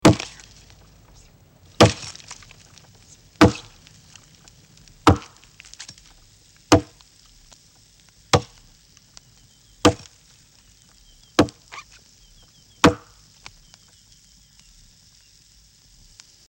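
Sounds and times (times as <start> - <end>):
tree being cut down: 0.0 - 12.0.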